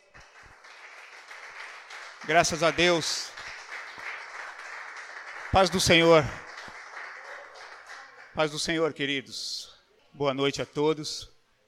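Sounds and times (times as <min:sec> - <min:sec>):
audience applause: 0:00.0 - 0:08.6
speech: 0:02.2 - 0:03.3, 0:05.5 - 0:06.4, 0:08.4 - 0:11.3.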